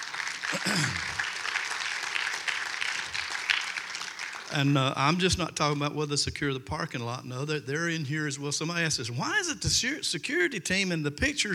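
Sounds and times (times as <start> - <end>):
audience applauding: 0.0 - 5.7
speech: 0.5 - 1.2, 4.5 - 11.5.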